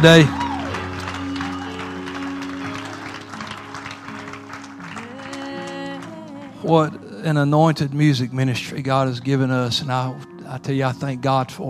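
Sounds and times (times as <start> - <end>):
speech: 0.0 - 0.4, 6.7 - 11.6
audience clapping hands: 0.0 - 7.0.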